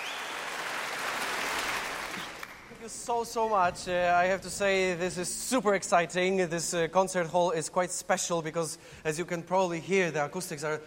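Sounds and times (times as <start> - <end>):
concert audience applause: 0.0 - 3.4
speech: 2.9 - 10.8.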